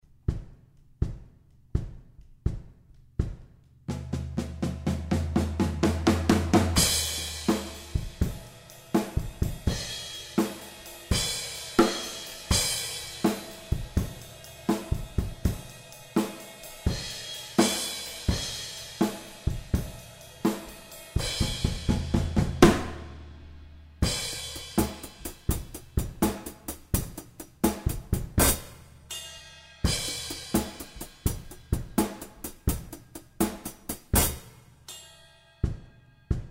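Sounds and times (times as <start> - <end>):
drums: 0.0 - 36.4.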